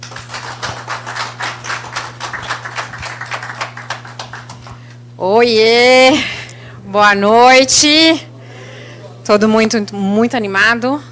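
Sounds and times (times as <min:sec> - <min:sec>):
audience applause: 0:00.0 - 0:04.9
speech: 0:05.2 - 0:08.3, 0:09.3 - 0:11.1.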